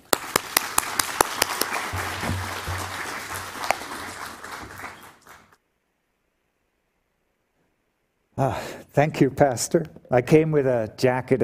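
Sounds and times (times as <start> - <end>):
audience applause welcoming a guest speaker: 0.0 - 5.6
speech: 8.4 - 11.4.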